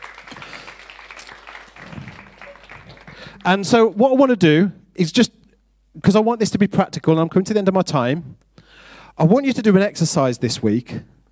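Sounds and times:
audience clapping: 0.0s - 4.0s
speech: 3.4s - 5.4s, 6.0s - 8.4s, 9.2s - 11.2s.

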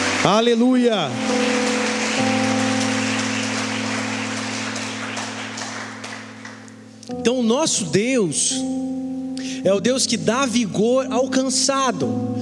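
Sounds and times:
audience applause: 0.0s - 6.7s
speech: 0.2s - 1.6s, 2.2s - 2.5s, 7.1s - 12.4s.

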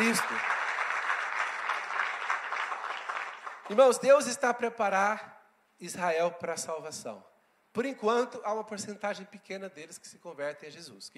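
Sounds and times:
church congregation applauding: 0.0s - 4.3s
speech: 3.7s - 11.1s.

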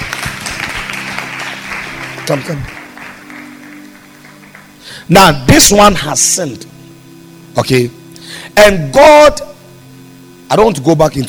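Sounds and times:
audience clapping: 0.0s - 5.1s
speech: 2.3s - 2.8s, 5.1s - 6.8s, 7.6s - 9.5s, 10.5s - 11.2s.

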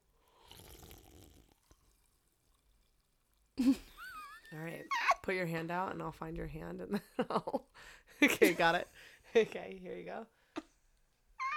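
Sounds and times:
sipping a sparkling water drink: 0.1s - 3.6s
speech: 3.7s - 3.9s, 4.5s - 10.4s.

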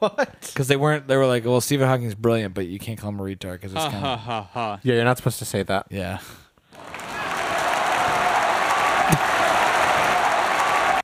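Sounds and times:
speech: 0.0s - 6.4s
audience applauding: 6.7s - 11.0s.

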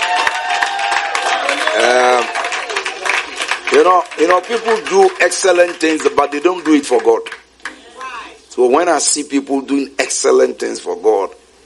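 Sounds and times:
audience clapping: 0.0s - 8.4s
speech: 3.8s - 7.4s, 8.6s - 11.4s.

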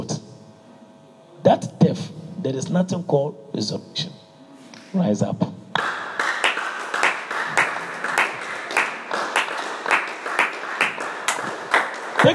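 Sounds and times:
speech: 1.4s - 4.2s, 4.9s - 5.6s
church congregation clapping in rhythmic unison during a Wednesday teaching service: 5.7s - 12.3s.

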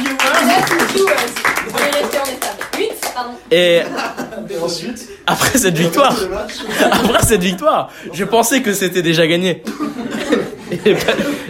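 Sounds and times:
crowd applause: 0.0s - 3.2s
speech: 1.0s - 1.5s, 3.2s - 10.1s, 10.8s - 11.4s
laughter: 3.6s - 7.8s, 9.6s - 11.4s.

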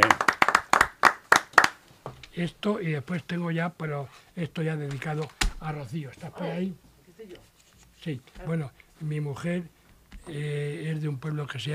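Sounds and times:
crowd applause: 0.0s - 1.8s
speech: 2.4s - 6.8s, 8.0s - 11.7s.

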